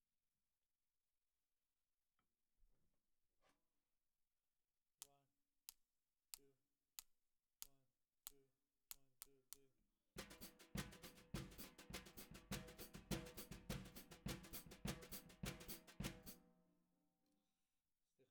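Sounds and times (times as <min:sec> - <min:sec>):
snare drum: 0:10.2 - 0:16.4.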